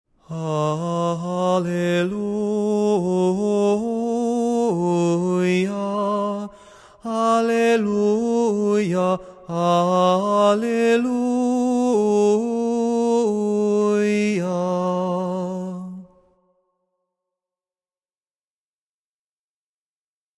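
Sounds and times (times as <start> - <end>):
chanted alleluia in tone six: 0.3 - 16.2.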